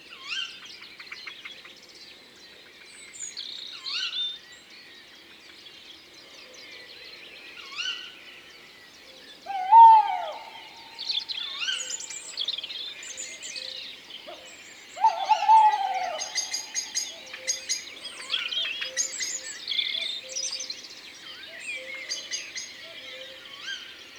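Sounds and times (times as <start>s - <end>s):
songbirds chirping and twittering: 0.0s - 24.1s
tawny owl hooting: 9.5s - 11.8s, 15.0s - 17.0s.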